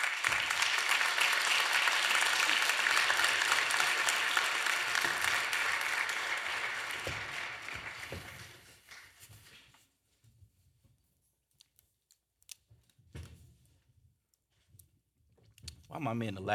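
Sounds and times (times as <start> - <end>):
audience applause as panelists come on stage: 0.0 - 9.2.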